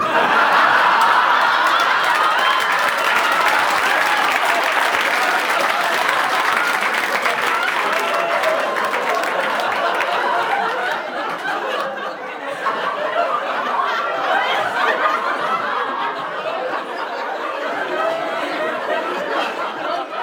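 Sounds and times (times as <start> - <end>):
studio audience applause: 0.0 - 12.0
laughter: 0.0 - 20.2.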